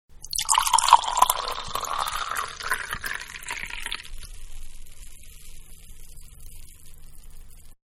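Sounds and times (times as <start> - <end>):
wine pouring into a tall glass: 0.2 - 4.2.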